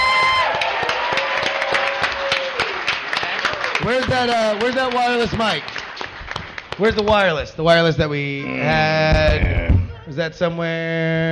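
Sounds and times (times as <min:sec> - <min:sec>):
audience applause: 0:00.0 - 0:07.3
speech: 0:03.9 - 0:05.7, 0:06.8 - 0:11.3.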